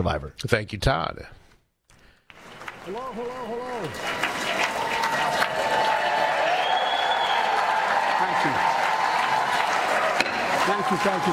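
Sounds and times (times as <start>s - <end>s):
speech: 0.0s - 1.4s, 2.8s - 4.3s, 8.2s - 8.8s, 10.6s - 11.3s
applause in a large legislative chamber: 2.3s - 11.3s
scattered voices and cheers: 2.5s - 11.3s.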